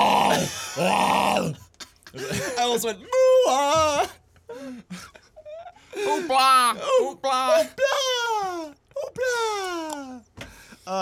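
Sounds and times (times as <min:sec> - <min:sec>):
person imitating hippo noises: 0:00.0 - 0:01.6
laughter: 0:00.1 - 0:09.9
speech: 0:00.8 - 0:01.1, 0:02.7 - 0:05.0, 0:06.0 - 0:08.0.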